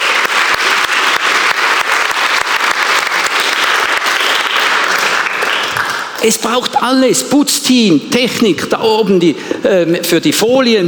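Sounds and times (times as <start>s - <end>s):
audience applause: 0.0s - 6.3s
speech: 6.2s - 10.8s.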